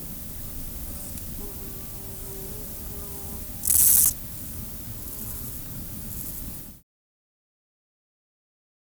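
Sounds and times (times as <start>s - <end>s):
Chorthippus parallelus tenuis chirping: 0.0s - 6.8s.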